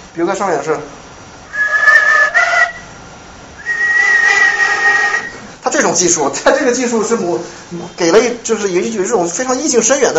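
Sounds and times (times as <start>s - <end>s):
speech: 0.2s - 1.0s, 5.8s - 10.1s
whistling combined with bamboo flute tone: 1.5s - 3.0s, 3.6s - 5.5s.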